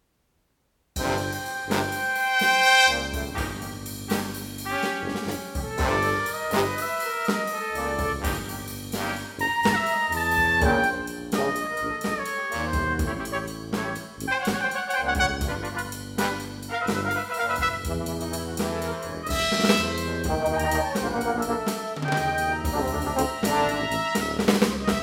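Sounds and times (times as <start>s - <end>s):
brass instruments: 1.0s - 25.0s.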